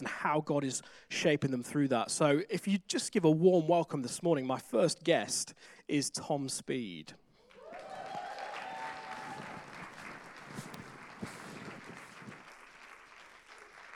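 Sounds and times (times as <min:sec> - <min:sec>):
speech: 0:00.2 - 0:07.2
audience applause: 0:07.4 - 0:13.9.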